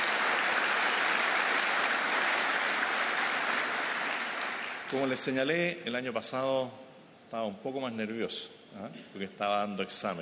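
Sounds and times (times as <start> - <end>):
audience applause: 0.0 - 5.3
speech: 4.9 - 10.2.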